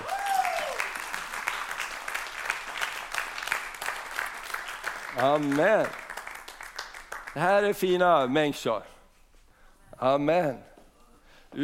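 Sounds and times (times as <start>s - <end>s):
audience applause: 0.0s - 7.4s
speech: 5.2s - 6.0s, 7.4s - 8.9s, 10.0s - 10.7s.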